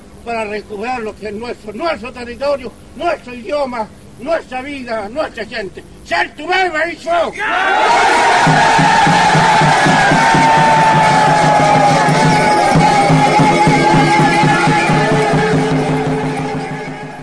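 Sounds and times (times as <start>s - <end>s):
speech: 0.2s - 10.7s
crowd raising a Mapuche afafán collective battle cry: 7.4s - 17.2s.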